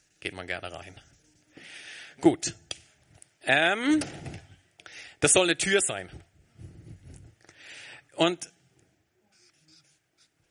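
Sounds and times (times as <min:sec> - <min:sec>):
speech: 0:00.2 - 0:02.8, 0:03.4 - 0:04.4, 0:05.2 - 0:06.3, 0:08.2 - 0:08.6
marker or chalk writing on a board: 0:09.3 - 0:10.4.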